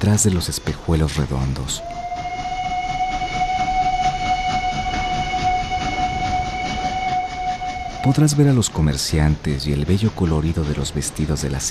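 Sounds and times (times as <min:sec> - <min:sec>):
speech: 0:00.0 - 0:02.0, 0:08.0 - 0:11.6
train rumbling past: 0:00.0 - 0:11.6
train horn blast: 0:02.0 - 0:08.4.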